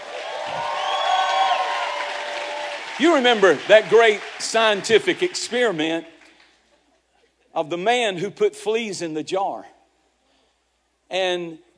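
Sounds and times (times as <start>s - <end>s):
audience clapping and cheering: 0.0s - 6.6s
speech: 3.0s - 6.1s, 7.6s - 9.8s, 11.1s - 11.6s.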